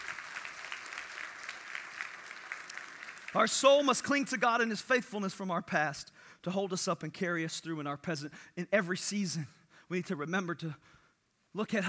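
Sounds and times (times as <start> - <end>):
audience applause: 0.0 - 3.4
speech: 3.3 - 11.0, 11.6 - 11.8.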